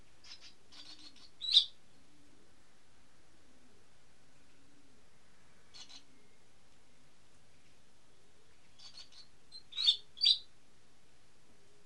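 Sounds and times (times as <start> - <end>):
bird calls as high chirps and buzzy bursts: 0.2 - 1.8, 5.7 - 6.1, 8.7 - 10.5.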